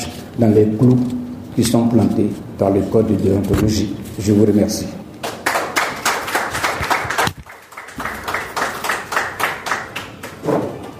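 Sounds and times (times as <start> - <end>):
speech: 0.4 - 5.0
audience applause: 5.2 - 10.5.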